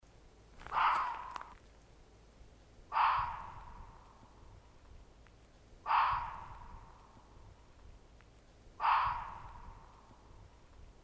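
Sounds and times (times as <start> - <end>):
faint low background rumble: 0.0 - 11.0
red fox barks: 0.6 - 1.6, 2.9 - 4.5, 5.8 - 7.4, 8.8 - 10.5.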